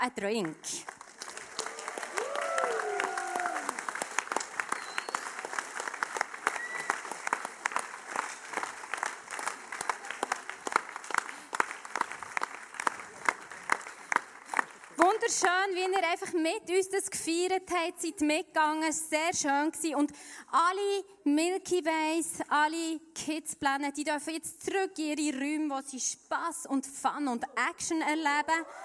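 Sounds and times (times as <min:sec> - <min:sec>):
speech: 0:00.0 - 0:01.0, 0:15.4 - 0:28.8
audience applause: 0:00.8 - 0:15.4.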